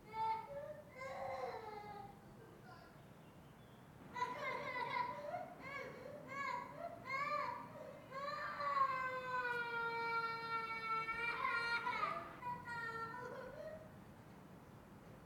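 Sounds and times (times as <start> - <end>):
four-year-old child crying in a tantrum: 0.1 - 2.2, 4.2 - 13.8.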